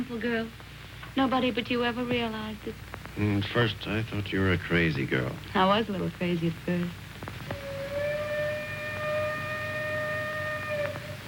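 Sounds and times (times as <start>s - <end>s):
speech: 0.0s - 7.0s
train whistle: 7.5s - 11.2s.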